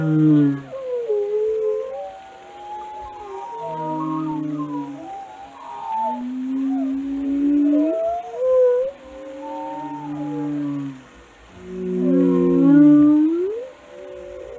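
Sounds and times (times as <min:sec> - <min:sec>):
speech: 0:00.0 - 0:00.7
whale vocalizations: 0:00.0 - 0:14.5.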